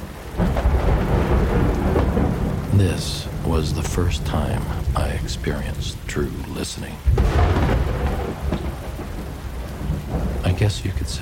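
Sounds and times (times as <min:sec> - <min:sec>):
heavy rain: 0:00.0 - 0:11.2
thunder: 0:00.4 - 0:03.6, 0:07.1 - 0:10.6
speech: 0:02.8 - 0:07.6, 0:10.5 - 0:11.2.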